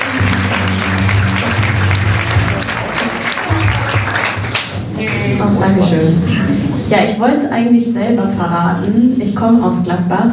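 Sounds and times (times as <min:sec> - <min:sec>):
applause: 0:00.0 - 0:05.2
speech: 0:05.4 - 0:10.3.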